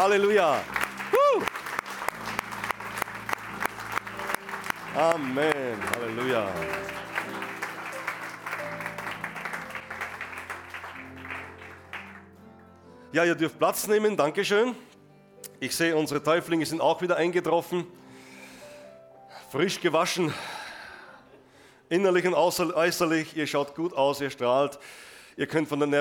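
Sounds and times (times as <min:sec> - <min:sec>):
speech: 0:00.0 - 0:01.6, 0:05.0 - 0:07.1, 0:13.1 - 0:14.9, 0:15.6 - 0:18.0, 0:19.5 - 0:20.5, 0:21.9 - 0:25.9
audience applauding: 0:00.0 - 0:12.4.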